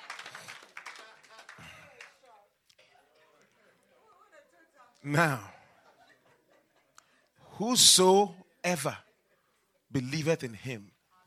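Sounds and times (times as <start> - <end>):
audience clapping: 0.0 - 3.0
laughter: 0.4 - 9.7
speech: 5.0 - 5.5, 7.6 - 9.1, 9.9 - 11.0.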